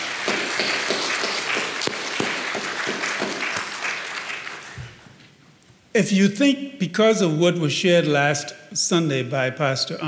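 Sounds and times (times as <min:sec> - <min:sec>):
audience applause: 0:00.0 - 0:05.0
speech: 0:06.0 - 0:10.0.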